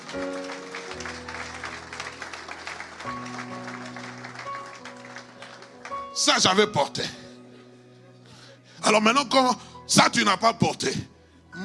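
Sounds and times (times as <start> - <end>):
congregation clapping for the men during a church service: 0.0 - 6.8
speech: 6.2 - 7.2, 8.9 - 11.6.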